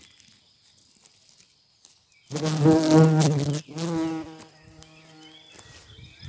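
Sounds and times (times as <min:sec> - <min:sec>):
speech: 0:02.3 - 0:03.8
bumblebee buzzing in flight: 0:02.3 - 0:05.4.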